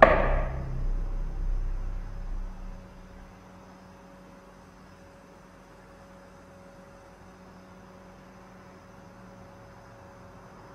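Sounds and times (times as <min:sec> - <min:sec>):
single loud knock: 0:00.0 - 0:03.3
quiet low hum: 0:00.0 - 0:04.0.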